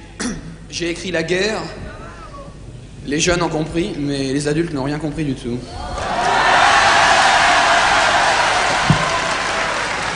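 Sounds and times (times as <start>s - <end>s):
speech: 0.3s - 1.8s, 3.0s - 6.0s
applause: 6.0s - 10.1s.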